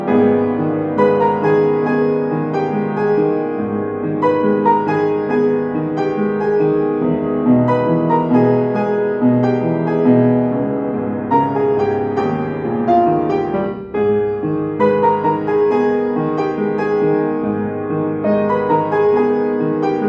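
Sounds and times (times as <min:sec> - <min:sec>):
piano instrumental: 0:00.0 - 0:20.0.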